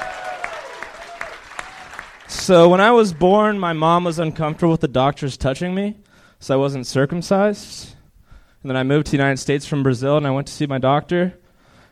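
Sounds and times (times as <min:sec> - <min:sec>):
faint cheering: 0:00.0 - 0:02.8
audience clapping: 0:00.0 - 0:03.6
speech: 0:02.4 - 0:08.0, 0:08.6 - 0:11.4.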